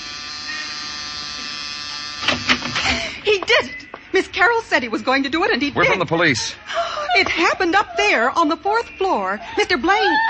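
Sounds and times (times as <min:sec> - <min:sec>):
door buzzer: 0:00.0 - 0:03.0
speech: 0:03.6 - 0:10.2
laughter: 0:05.6 - 0:10.2.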